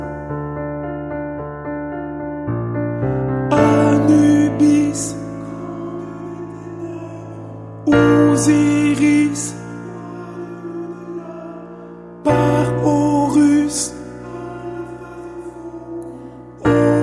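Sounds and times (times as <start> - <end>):
soprano voice: 3.5 - 17.0.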